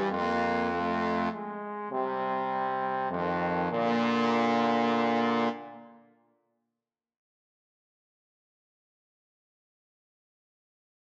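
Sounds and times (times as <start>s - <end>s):
trombone trio: 0.0s - 5.9s.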